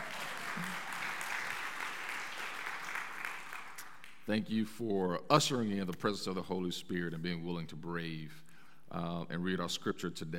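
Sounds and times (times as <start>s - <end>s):
round of applause: 0.0s - 4.3s
speech: 4.3s - 10.3s.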